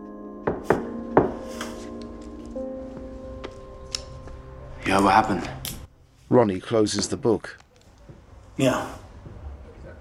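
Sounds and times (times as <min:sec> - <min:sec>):
knocking on a wooden door: 0:00.5 - 0:01.4
speech: 0:04.9 - 0:05.6, 0:06.3 - 0:07.6, 0:08.6 - 0:09.0.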